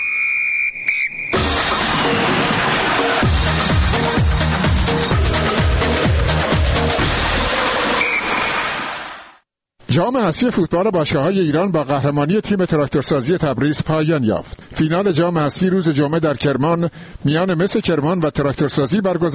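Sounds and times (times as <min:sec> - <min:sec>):
sports segment whistle blast: 0:00.0 - 0:01.4, 0:07.9 - 0:09.0
sports segment instrumental jingle with pounding bass beat: 0:01.4 - 0:08.4
speech: 0:10.0 - 0:19.3.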